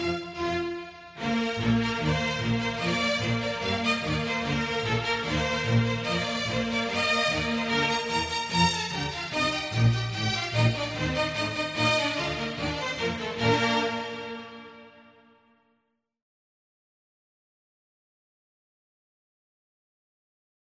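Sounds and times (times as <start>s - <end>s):
easy listening and classical music: 0.0s - 15.3s.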